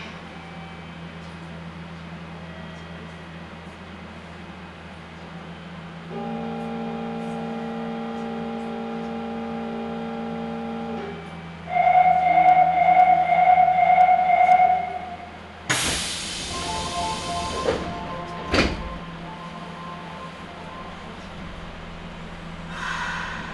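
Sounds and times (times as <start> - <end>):
Nagoya Sakura-dori Line subway train hum: 0.0 - 23.5
train doors hiss and thump: 15.7 - 19.2.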